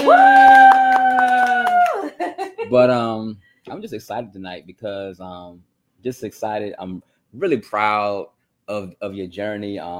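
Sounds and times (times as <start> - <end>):
speech: 0.0 - 0.4, 2.7 - 9.9
hand clap: 0.0 - 2.0.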